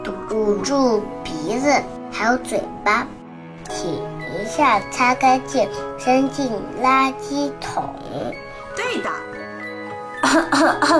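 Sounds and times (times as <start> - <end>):
speech: 0.4 - 9.3, 10.2 - 10.9
hoarse throaty coughing: 10.2 - 10.9.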